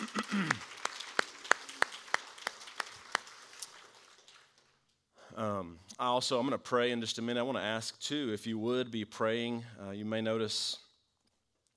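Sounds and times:
audience applause: 0.0 - 4.9
sharp evenly spaced claps: 0.0 - 5.1
speech: 5.6 - 10.8.

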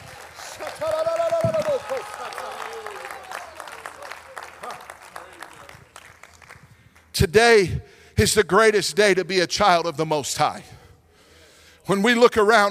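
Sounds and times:
audience clapping hands: 0.0 - 7.1
speech: 7.2 - 10.8, 11.9 - 12.7.

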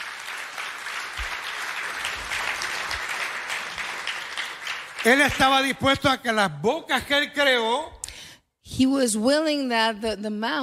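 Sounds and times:
church congregation applauding: 0.0 - 6.4
speech: 5.0 - 8.0, 8.8 - 10.6.

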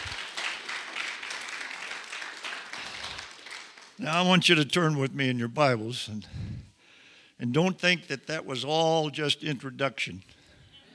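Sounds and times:
audience applauding: 0.0 - 4.0
speech: 4.0 - 6.7, 7.4 - 10.4.

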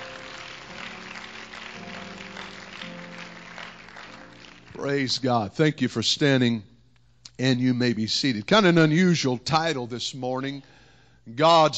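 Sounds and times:
audience clapping: 0.0 - 5.1
speech: 4.8 - 6.7, 7.4 - 11.7.

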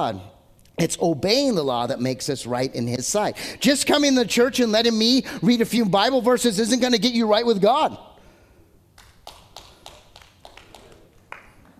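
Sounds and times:
speech: 0.0 - 8.1
few people clapping: 8.9 - 11.7.

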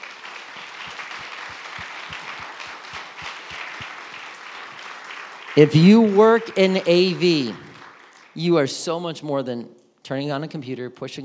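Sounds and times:
audience round of applause: 0.0 - 8.5
speech: 5.6 - 7.6, 8.4 - 11.2.

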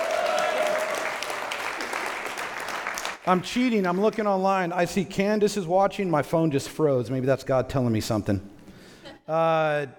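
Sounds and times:
studio audience clapping and cheering: 0.0 - 4.8
speech: 3.2 - 8.5, 9.3 - 9.9.

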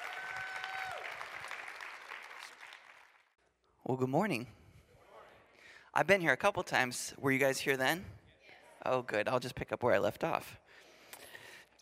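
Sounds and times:
church congregation applause welcoming a guest speaker: 0.0 - 3.4
speech: 3.9 - 4.6, 6.0 - 8.2, 8.8 - 10.6.

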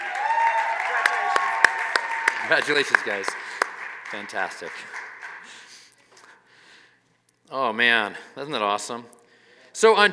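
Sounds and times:
audience applause: 0.0 - 5.9
speech: 2.5 - 3.5, 4.1 - 5.0, 7.5 - 9.2, 9.8 - 10.1.

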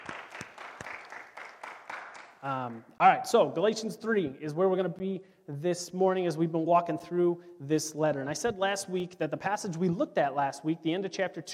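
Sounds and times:
audience clapping for church elders: 0.0 - 2.8
speech: 2.4 - 11.5.

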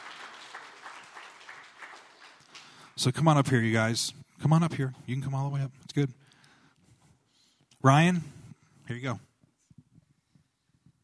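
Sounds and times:
audience applause welcoming speakers: 0.0 - 3.0
speech: 3.0 - 6.2, 7.8 - 9.3.

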